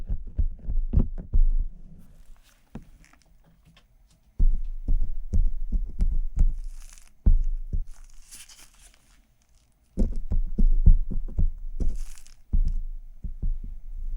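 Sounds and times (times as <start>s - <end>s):
dull thumping taps: 0.0s - 1.8s, 2.7s - 8.5s, 10.0s - 14.1s
brief hissy scratching: 2.0s - 3.4s, 4.2s - 12.9s.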